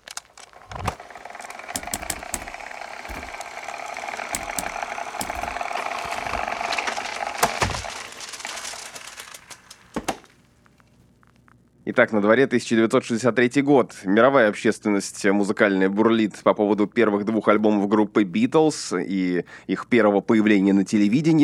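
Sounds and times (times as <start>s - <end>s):
time machine levers and gears clicking and ratcheting: 0.0s - 10.3s
steady whirring hum: 0.0s - 11.8s
loud clunks: 0.6s - 8.9s
speech: 11.9s - 21.4s.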